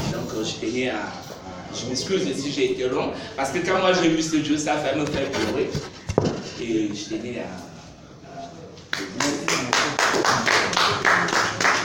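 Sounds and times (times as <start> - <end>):
speech: 0.4 - 6.0, 6.6 - 7.7
journalists applauding: 8.9 - 11.8.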